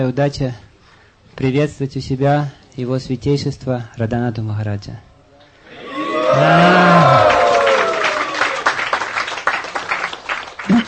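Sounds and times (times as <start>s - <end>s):
speech: 0.0s - 0.7s, 1.4s - 5.1s, 6.3s - 7.3s
crowd in a temple loudly shouting a devotional chant: 5.7s - 8.7s
scattered clapping and cheering: 5.8s - 10.8s.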